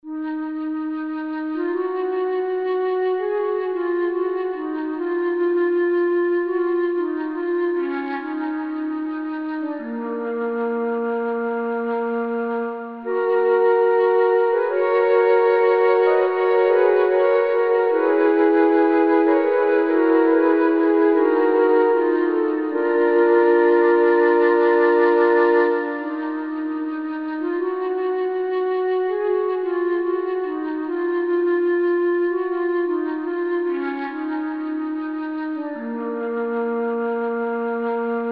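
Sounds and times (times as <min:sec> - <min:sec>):
mk2 flute: 0:00.0 - 0:38.3.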